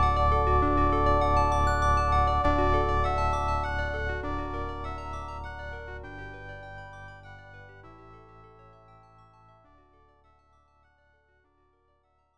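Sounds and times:
romantic music: 0.0s - 7.9s.

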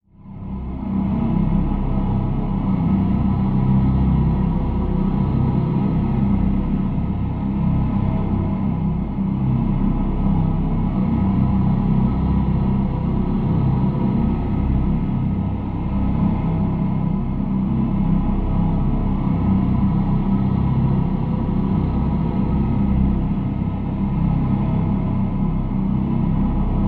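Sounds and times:
low scary vocal drone: 0.1s - 26.8s.

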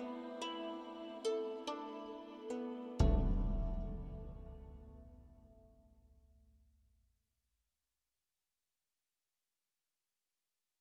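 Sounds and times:
Celtic forest music: 0.0s - 6.4s.

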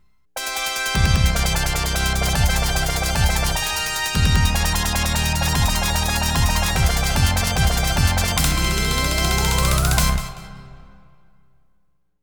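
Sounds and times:
bonus fanfare: 0.4s - 11.4s.

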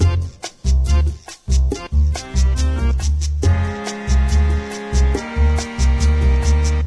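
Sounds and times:
Italian music: 0.0s - 6.8s.

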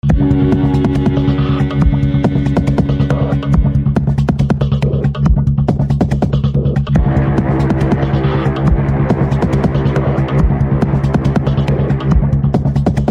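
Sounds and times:
suspense music: 0.0s - 13.0s.

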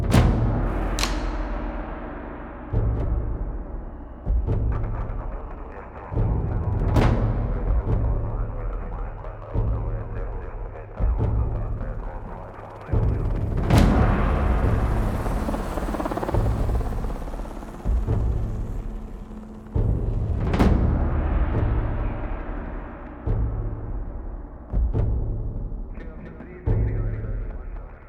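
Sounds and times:
main menu drone wave music: 0.1s - 27.3s.

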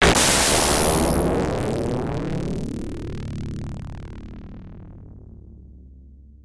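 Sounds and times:
explosion: 0.0s - 2.8s.

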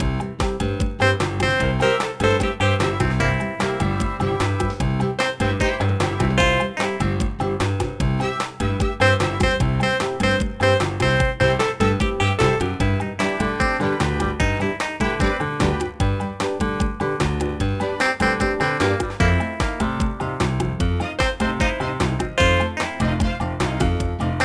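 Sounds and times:
music: 0.0s - 24.4s.

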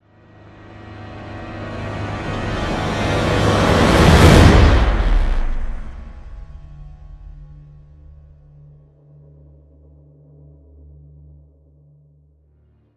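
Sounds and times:
musical sting: 0.5s - 8.6s.

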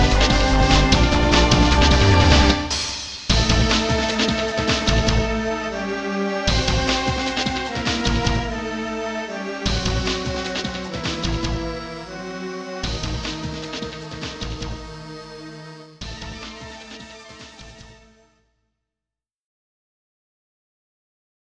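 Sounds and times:
beat: 0.0s - 5.9s, 6.5s - 8.8s, 9.6s - 15.1s, 16.0s - 18.0s.

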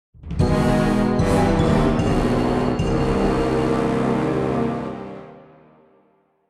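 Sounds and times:
descending jingle: 0.4s - 4.8s.

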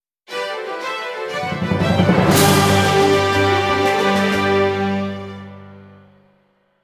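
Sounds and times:
minigame won jingle: 1.4s - 5.0s.

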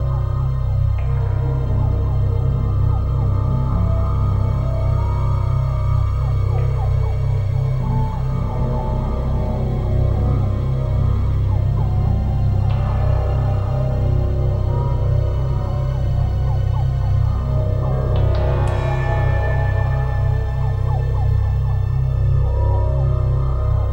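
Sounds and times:
music: 0.0s - 23.9s.

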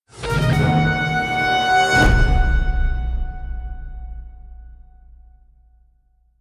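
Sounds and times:
victory stinger: 0.1s - 4.8s.

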